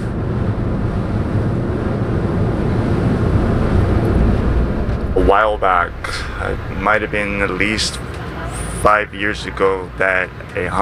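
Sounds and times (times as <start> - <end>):
wind buffeting the microphone: 0.0 - 8.4
ferry engine rumble on the bay: 0.0 - 10.8
speech: 5.4 - 8.1, 8.8 - 10.8.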